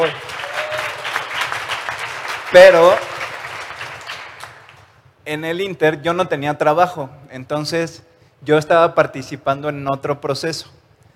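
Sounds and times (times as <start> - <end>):
audience applause: 0.0 - 4.8
speech: 2.5 - 3.1, 5.3 - 10.8.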